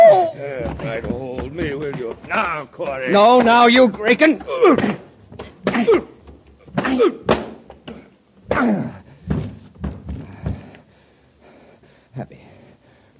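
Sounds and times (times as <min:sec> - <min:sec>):
heavy thudding punches in a scuffle: 0:00.8 - 0:10.7
speech: 0:02.4 - 0:05.0
person grunting and gasping: 0:08.5 - 0:09.1.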